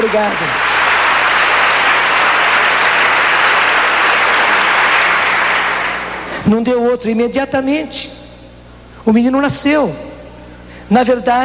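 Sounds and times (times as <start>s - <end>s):
speech: 0.0s - 0.6s, 6.4s - 8.2s, 9.0s - 10.1s, 10.9s - 11.4s
audience applause: 0.0s - 6.4s.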